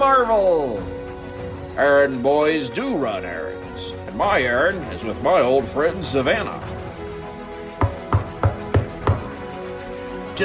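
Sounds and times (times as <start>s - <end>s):
speech: 0.0s - 1.0s, 1.8s - 6.7s
knocking on a door: 7.8s - 9.4s.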